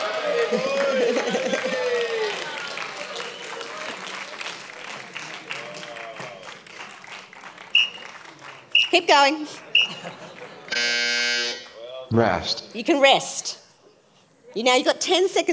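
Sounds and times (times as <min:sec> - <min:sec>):
laughter: 0:00.0 - 0:03.0, 0:09.4 - 0:10.8
cheering and clapping: 0:00.0 - 0:08.8
speech: 0:00.5 - 0:02.0, 0:09.0 - 0:10.2, 0:12.1 - 0:13.5, 0:14.6 - 0:15.5.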